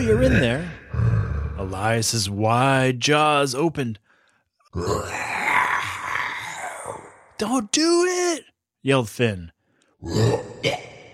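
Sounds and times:
speech: 0.0 - 4.0, 4.7 - 5.3, 7.4 - 10.9
person coughing up furball: 10.6 - 11.0.

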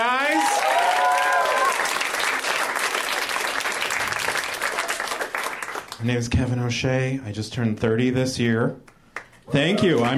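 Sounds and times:
crowd applauding: 0.0 - 6.0, 9.2 - 10.1
speech: 6.0 - 8.9, 9.5 - 10.1.

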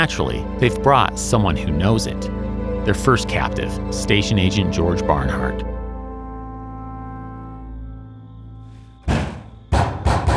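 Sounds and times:
speech: 0.0 - 5.7
secret knock on a train car door: 9.1 - 10.3.

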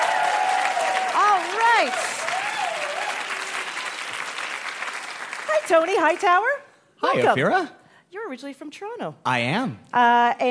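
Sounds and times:
game show audience applauding to welcome contestants: 0.0 - 6.4
speech: 1.8 - 2.1, 5.7 - 10.4.

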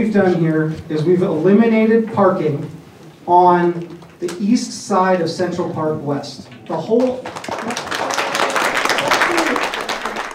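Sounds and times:
speech: 0.0 - 7.8
crowd applause in a public meeting room: 6.6 - 10.3.

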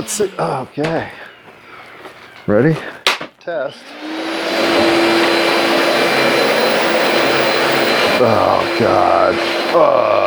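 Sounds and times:
speech: 0.0 - 1.2, 2.5 - 5.2, 8.2 - 10.2
vacuum cleaner running: 3.7 - 10.2.

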